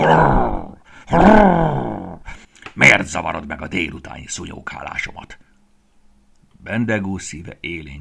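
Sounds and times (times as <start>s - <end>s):
angry animal growl: 0.0s - 2.2s
speech: 1.1s - 1.8s, 3.1s - 5.5s, 6.6s - 7.9s.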